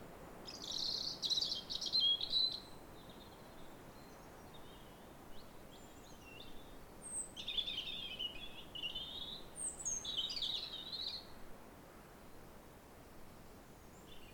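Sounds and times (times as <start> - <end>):
European robin singing: 0.4 - 11.3.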